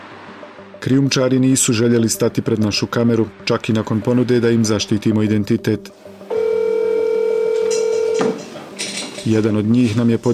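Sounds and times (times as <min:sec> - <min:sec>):
speech: 0:00.8 - 0:06.2, 0:09.2 - 0:10.3
telephone dial tone: 0:06.3 - 0:08.4.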